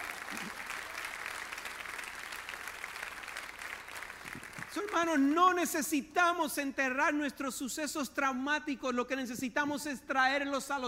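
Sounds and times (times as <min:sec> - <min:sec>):
audience applauding: 0:00.0 - 0:05.3
speech: 0:04.8 - 0:10.8.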